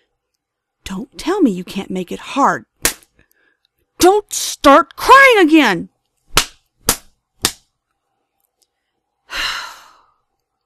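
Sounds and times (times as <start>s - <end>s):
speech: 0.9s - 2.7s, 4.0s - 5.9s
slaps on a face: 2.8s - 3.1s, 6.3s - 7.7s
breathy sigh: 9.3s - 10.2s.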